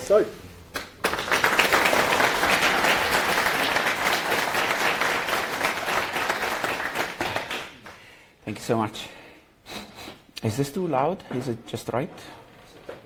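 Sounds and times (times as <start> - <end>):
speech: 0.1 - 0.4, 8.6 - 9.2, 10.4 - 12.4
audience applause: 1.0 - 8.0.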